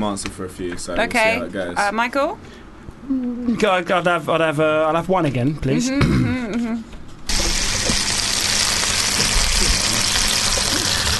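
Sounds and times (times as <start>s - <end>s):
speech: 0.0s - 7.0s
plantain frying: 7.3s - 11.1s.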